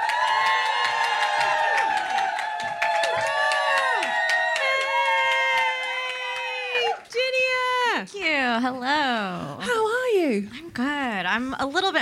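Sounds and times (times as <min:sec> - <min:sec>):
live audience cheering, whooping and clapping: 0:00.0 - 0:07.8
speech: 0:08.6 - 0:12.0.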